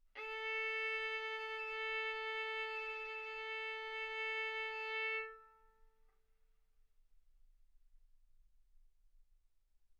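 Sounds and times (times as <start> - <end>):
violin arco on A string: 0.2 - 5.8.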